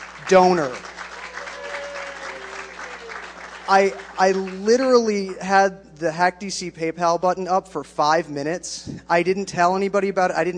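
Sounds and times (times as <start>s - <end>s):
audience round of applause: 0.0s - 4.8s
speech: 0.3s - 0.9s, 3.7s - 10.5s.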